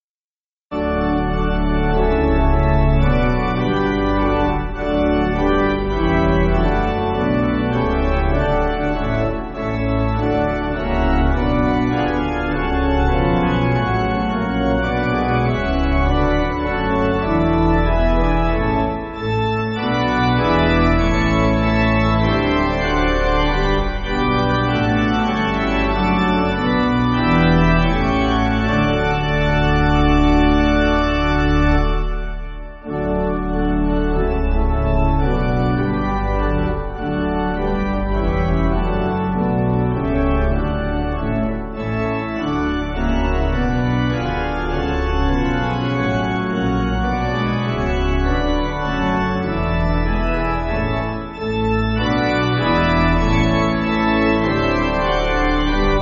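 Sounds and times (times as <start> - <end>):
church pipe organ backing: 0.7 - 56.0.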